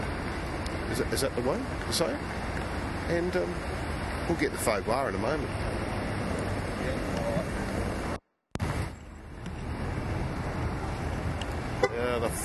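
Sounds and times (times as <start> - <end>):
rumbling outdoor noise: 0.0 - 12.4
speech: 1.0 - 5.8
car horn beep: 11.8 - 12.1.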